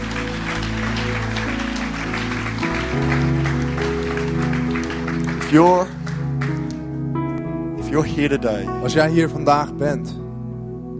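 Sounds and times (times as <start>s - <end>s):
audience applause: 0.0s - 6.8s
speech: 5.5s - 6.0s, 7.9s - 10.2s.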